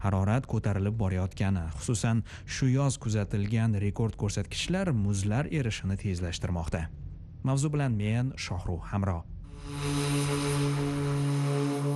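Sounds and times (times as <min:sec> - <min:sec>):
speech: 0:00.0 - 0:10.0
Douglas DC-3 propeller airplane engine drone: 0:09.5 - 0:11.9.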